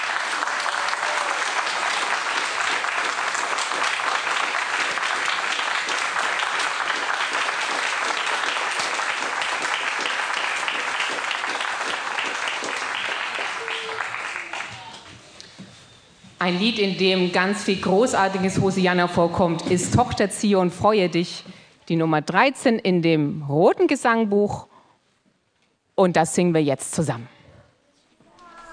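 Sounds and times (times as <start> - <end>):
audience applauding: 0.0 - 15.1
speech: 16.5 - 24.7, 26.0 - 27.4.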